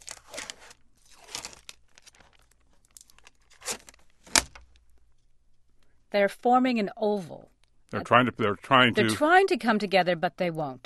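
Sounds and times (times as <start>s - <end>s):
two strips of tape ripped off a table in a studio: 0.0s - 4.8s
speech: 6.1s - 10.8s.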